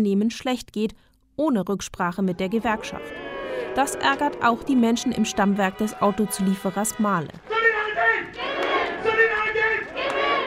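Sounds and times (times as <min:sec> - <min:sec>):
speech: 0:00.0 - 0:07.6
large crowd of workers shouting and cheering at union rally: 0:02.3 - 0:10.4.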